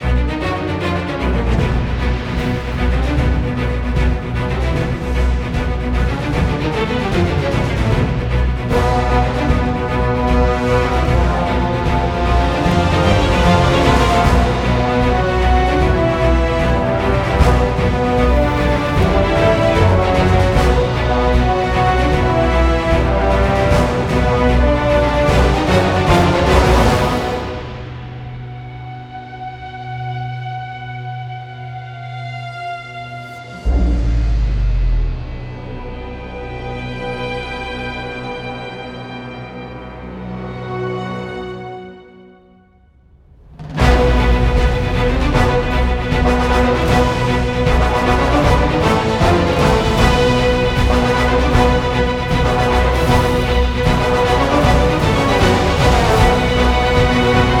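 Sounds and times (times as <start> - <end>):
orchestra: 0.0 - 57.5.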